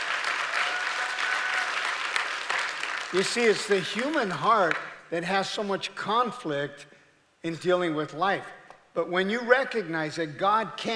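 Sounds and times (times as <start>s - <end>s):
weak golf clap from audience: 0.0s - 4.8s
speech: 3.1s - 10.9s.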